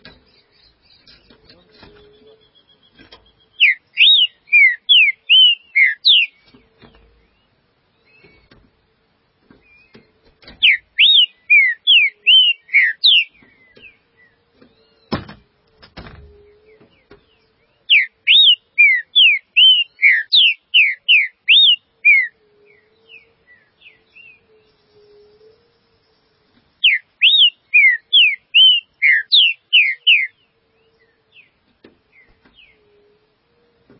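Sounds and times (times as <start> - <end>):
green-winged saltator whistled song: 3.5 - 6.4, 10.6 - 13.3, 17.9 - 22.3, 26.8 - 30.3.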